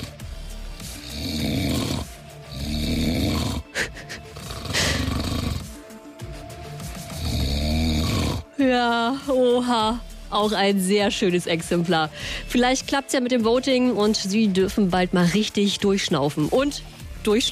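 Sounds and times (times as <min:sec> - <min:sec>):
man snoring: 0:00.0 - 0:08.6
speech: 0:08.8 - 0:17.4.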